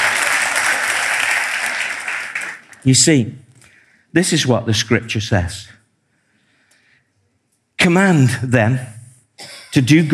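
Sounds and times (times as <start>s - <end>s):
audience clapping: 0.0s - 2.9s
speech: 2.8s - 3.5s, 4.1s - 5.8s, 7.8s - 10.1s.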